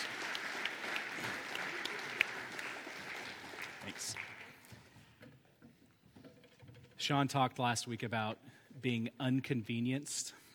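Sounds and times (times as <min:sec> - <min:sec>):
crowd applause: 0:00.0 - 0:04.9
speech: 0:03.9 - 0:04.2, 0:07.1 - 0:10.4.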